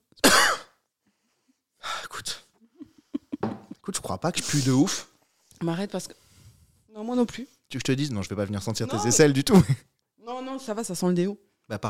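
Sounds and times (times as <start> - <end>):
coughing: 0.2 - 0.8
speech: 4.0 - 6.2, 7.0 - 9.9, 10.6 - 11.8.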